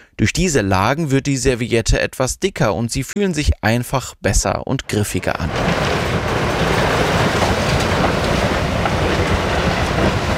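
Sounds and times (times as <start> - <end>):
speech: 0.2 - 6.4
loud industrial machinery rumble and hiss: 5.2 - 10.3.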